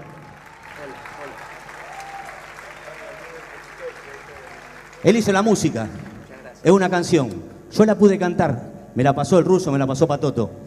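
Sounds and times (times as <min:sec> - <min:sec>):
crowd clapping: 0:00.0 - 0:06.6
faint whoops: 0:00.2 - 0:04.8
speech: 0:05.0 - 0:10.6.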